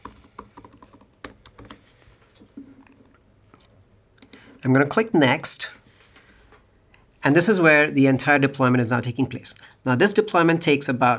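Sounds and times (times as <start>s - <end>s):
computer keyboard typing a username and password: 0.0s - 1.8s
speech: 4.6s - 5.8s, 7.2s - 11.1s.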